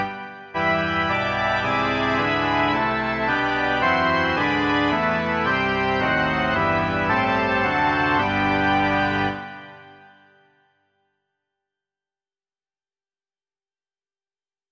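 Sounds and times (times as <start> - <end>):
organ: 0.0 - 10.6.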